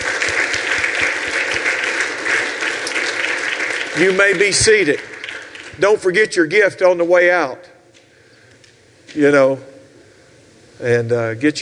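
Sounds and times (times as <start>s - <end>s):
large audience clapping: 0.0s - 6.7s
speech: 4.0s - 5.1s, 5.8s - 7.7s, 9.2s - 9.7s, 10.8s - 11.6s.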